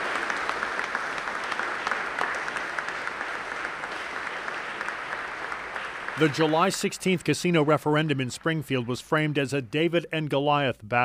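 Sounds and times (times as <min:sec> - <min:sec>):
crowd applauding in a cathedral: 0:00.0 - 0:09.6
speech: 0:06.2 - 0:11.0.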